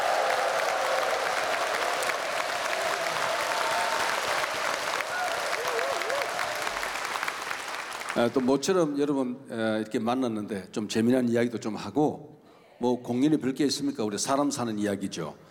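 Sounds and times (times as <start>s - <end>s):
audience applause: 0.0s - 8.7s
speech: 8.2s - 15.4s.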